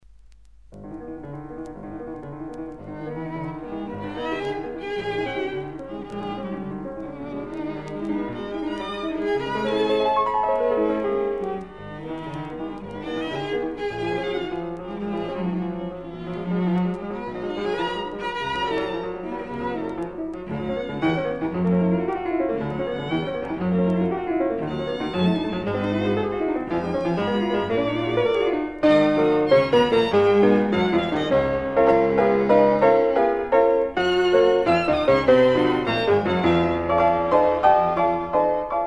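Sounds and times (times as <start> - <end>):
piano trio: 0.0 - 38.8.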